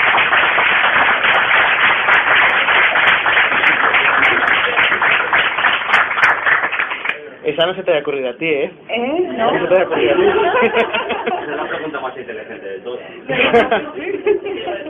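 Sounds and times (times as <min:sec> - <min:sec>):
crowd applause: 0:00.0 - 0:07.2
speech: 0:07.6 - 0:14.8
laughter: 0:09.4 - 0:12.2, 0:13.2 - 0:14.8.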